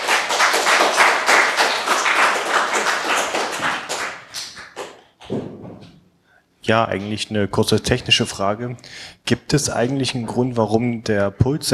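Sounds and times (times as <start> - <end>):
audience applause: 0.0 - 5.0
speech: 6.7 - 11.7.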